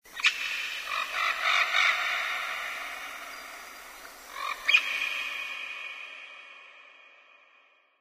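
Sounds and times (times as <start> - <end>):
bird call: 0.1 - 6.2.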